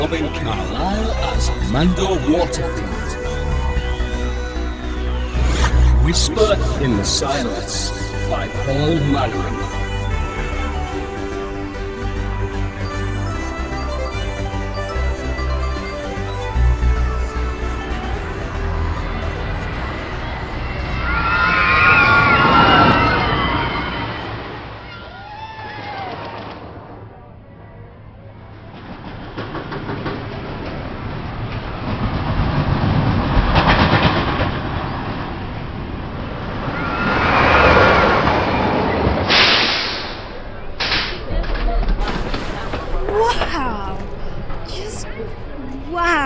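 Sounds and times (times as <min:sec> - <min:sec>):
speech: 0:00.0 - 0:03.2, 0:06.1 - 0:09.8
roller coaster rumbling along its rails: 0:00.0 - 0:46.2
crowd cheering and screaming: 0:19.9 - 0:26.8, 0:36.4 - 0:39.3.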